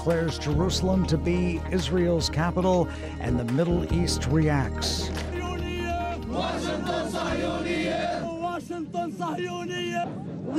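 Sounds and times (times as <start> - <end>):
speech: 0.0 - 5.3
young people shouting at a protest: 5.3 - 10.5.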